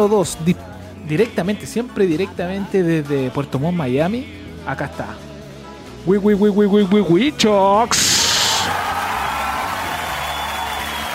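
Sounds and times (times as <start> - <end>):
speech: 0.0 - 5.3, 6.0 - 8.0
people shouting: 8.0 - 9.9
crowd applause: 8.0 - 11.1.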